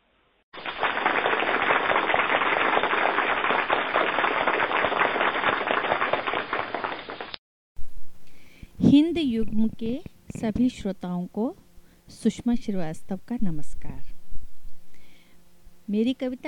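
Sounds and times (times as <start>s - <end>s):
loud audience applause: 0.6s - 7.4s
speech: 9.2s - 14.1s, 15.9s - 16.4s.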